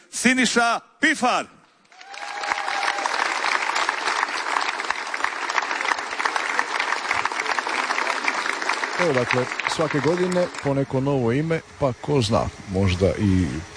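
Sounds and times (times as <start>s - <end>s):
speech: 0.2s - 1.6s, 9.0s - 13.7s
audience applause at a music festival: 1.9s - 11.5s.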